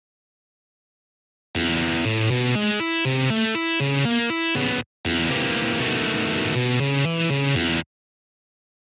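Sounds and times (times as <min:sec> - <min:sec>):
music turnarounds in E: 0:01.6 - 0:07.8.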